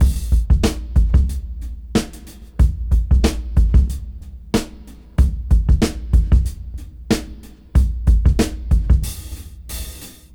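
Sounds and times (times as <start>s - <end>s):
rap beat: 0.0s - 10.3s.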